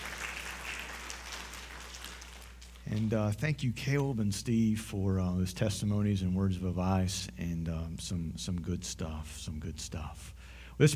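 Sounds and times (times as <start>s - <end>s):
audience applause: 0.0s - 2.8s
speech: 2.9s - 10.9s.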